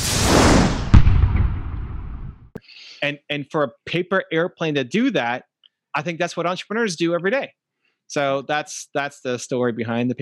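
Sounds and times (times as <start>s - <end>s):
sonic boom of a jet: 0.0s - 2.6s
speech: 3.0s - 10.2s.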